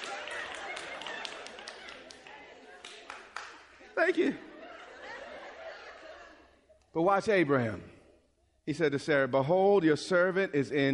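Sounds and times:
audience applauding: 0.0s - 3.7s
laughter: 0.0s - 6.9s
speech: 4.0s - 4.5s, 6.9s - 8.0s, 8.7s - 10.9s.

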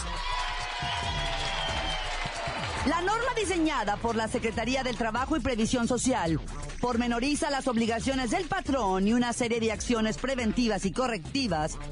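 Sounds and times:
applause: 0.0s - 3.5s
speech: 2.8s - 11.9s.

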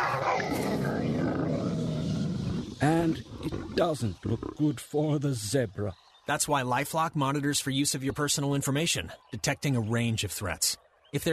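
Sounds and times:
lion roaring as it leaps: 0.0s - 4.7s
speech: 2.8s - 11.3s.

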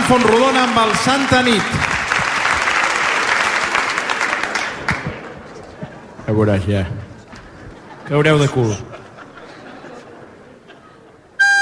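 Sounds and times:
crowd applauding: 0.0s - 5.8s
speech: 0.1s - 1.9s, 6.3s - 7.0s, 8.1s - 8.9s
laughter: 7.4s - 11.4s.

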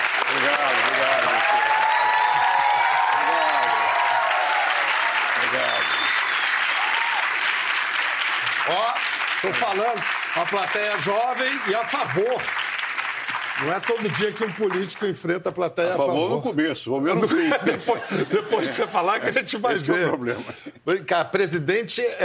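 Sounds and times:
audience applause: 0.0s - 15.3s
speech: 9.6s - 12.6s, 13.6s - 22.2s
laughter: 16.1s - 20.8s.

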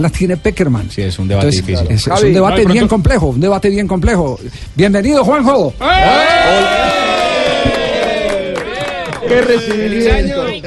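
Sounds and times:
speech: 0.0s - 7.0s, 9.3s - 10.6s
studio audience cheering: 5.8s - 10.1s
studio audience applause: 6.4s - 10.0s
laughter: 7.0s - 10.6s.

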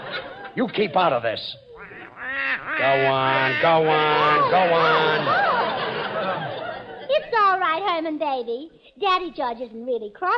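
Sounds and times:
laughter: 0.0s - 7.3s
speech: 0.6s - 1.6s, 2.5s - 5.6s, 7.3s - 10.3s
duck quacking: 1.6s - 5.2s.

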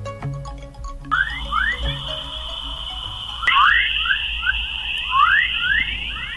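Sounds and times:
low hum: 0.0s - 6.3s
steady high whine: 1.0s - 6.3s
warbling rising electronic-like chirps of Earth rendered as sound: 1.1s - 6.3s.

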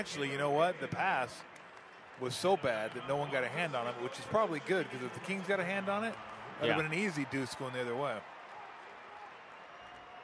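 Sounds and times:
speech: 0.0s - 1.5s, 2.2s - 8.3s
arena crowd applause: 0.0s - 10.2s.

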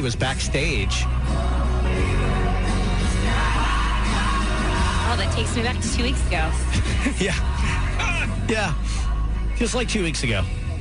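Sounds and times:
speech: 0.0s - 2.2s, 5.1s - 7.8s, 8.5s - 10.6s
concert crowd cheering and singing along: 0.0s - 10.7s.

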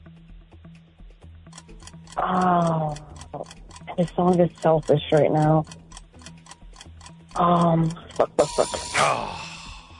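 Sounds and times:
timer being wound with ratcheting clicks: 1.5s - 8.8s
speech: 2.2s - 5.8s, 7.4s - 9.5s
brief buzzing tone: 8.2s - 9.9s.

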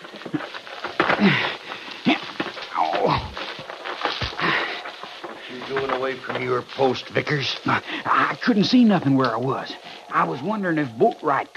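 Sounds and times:
thrown rock landing, radio drama sound effect: 0.0s - 4.8s
scuffing noises: 0.0s - 7.8s
speech: 1.2s - 1.5s, 6.0s - 11.5s.

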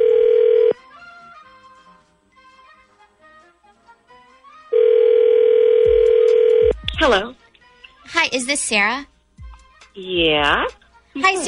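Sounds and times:
telephone dial tone as a call is placed: 0.0s - 0.8s, 4.8s - 6.7s
speech: 7.0s - 7.3s, 8.3s - 9.1s, 10.0s - 11.4s.

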